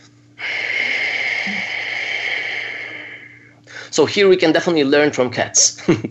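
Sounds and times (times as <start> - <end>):
audible exhale through lightly tightened throat: 0.4 - 3.9
speech: 4.0 - 6.0.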